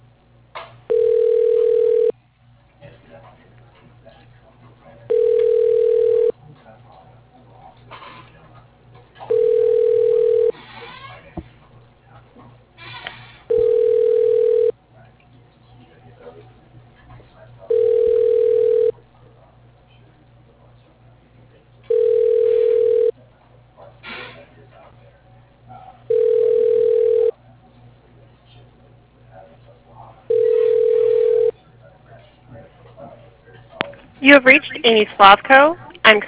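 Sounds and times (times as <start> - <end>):
faint low hum: 0.0 - 36.2
telephone ringback tone while a call is transferred: 0.9 - 2.1, 5.1 - 6.3, 9.3 - 10.5, 13.5 - 14.7, 17.7 - 18.9, 21.9 - 23.1, 26.1 - 27.3, 30.3 - 31.5
speech: 34.3 - 36.2.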